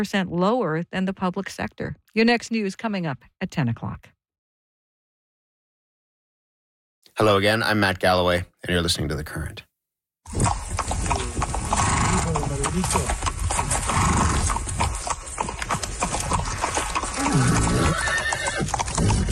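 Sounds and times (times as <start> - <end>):
speech: 0.0 - 4.2, 7.2 - 9.7, 12.7 - 13.3
hooves clip-clopping: 10.3 - 19.3
horse neighing: 10.3 - 19.3.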